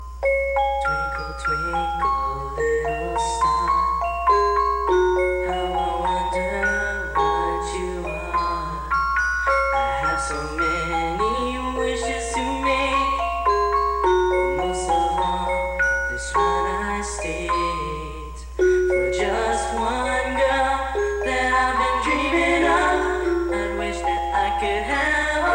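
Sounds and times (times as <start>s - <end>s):
nursery rhyme melody: 0.0s - 25.5s.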